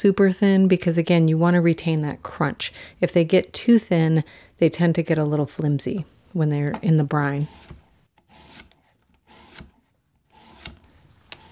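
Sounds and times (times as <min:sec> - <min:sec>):
speech: 0:00.0 - 0:07.8
knife slicing cucumbers into rounds: 0:06.7 - 0:11.5.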